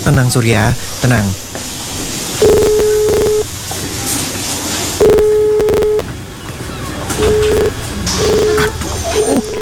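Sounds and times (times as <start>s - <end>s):
speech: 0.1s - 1.7s
telephone tones from a call dialed to family after an earthquake: 2.4s - 3.5s, 5.0s - 6.1s, 7.1s - 9.6s.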